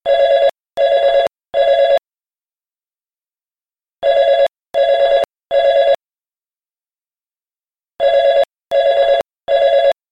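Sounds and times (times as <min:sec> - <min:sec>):
business cell phone: 0:00.1 - 0:02.0, 0:04.0 - 0:06.0, 0:08.0 - 0:10.0.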